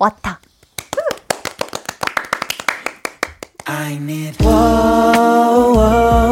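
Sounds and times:
speech: 0.0s - 0.3s, 3.8s - 6.2s
live hand clapping: 0.5s - 3.8s.

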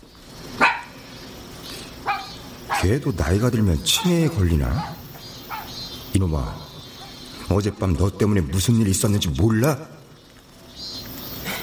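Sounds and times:
faint hiss: 0.0s - 11.6s
dog barking: 0.6s - 1.0s, 2.0s - 2.9s, 3.9s - 5.8s
speech: 2.8s - 5.0s, 6.1s - 6.7s, 7.5s - 10.0s
laughter: 11.4s - 11.6s.

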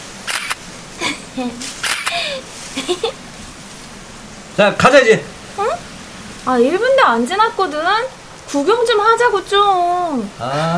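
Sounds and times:
camera shutter clicks as a photo is taken: 0.3s - 0.6s, 1.8s - 2.2s
speech: 1.4s - 3.3s, 4.6s - 10.7s.

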